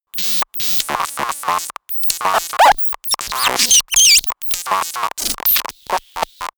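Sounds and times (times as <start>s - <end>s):
glitchy communication signal noise: 0.1s - 6.5s.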